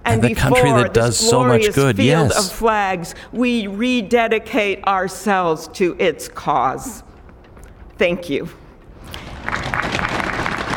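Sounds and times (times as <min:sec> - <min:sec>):
speech: 0:00.1 - 0:07.1, 0:08.0 - 0:08.6
crowd clapping in unison: 0:09.1 - 0:10.7.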